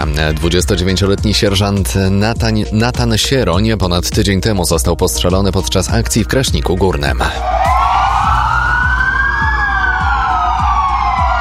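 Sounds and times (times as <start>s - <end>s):
speech: 0.2s - 7.7s
police car siren wailing in tribute: 7.4s - 11.3s.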